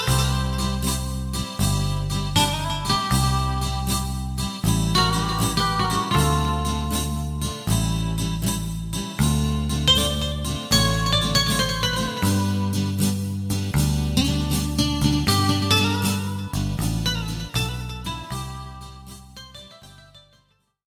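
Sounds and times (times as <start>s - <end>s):
drum: 0.1s - 18.5s.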